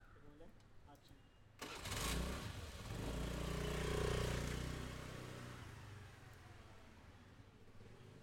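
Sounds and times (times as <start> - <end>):
scooter starting and going fast: 1.6 - 5.8.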